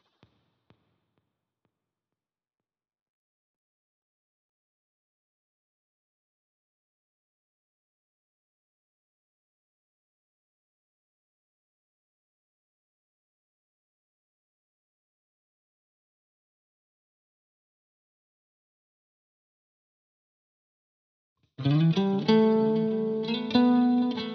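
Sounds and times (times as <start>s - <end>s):
lead guitar at 95 BPM in A minor: 21.6s - 24.3s.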